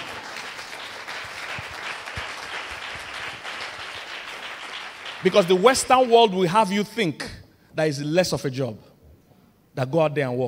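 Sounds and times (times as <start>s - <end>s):
audience applause: 0.0s - 6.2s
speech: 5.2s - 8.9s, 9.8s - 10.4s.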